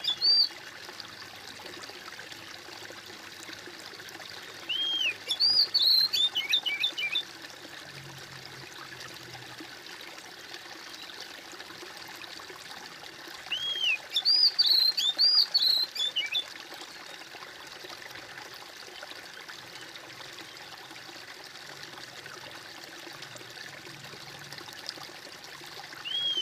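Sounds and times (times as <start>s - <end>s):
bird whistling song: 0.0s - 0.5s, 4.7s - 7.2s, 13.5s - 16.5s, 26.0s - 26.3s.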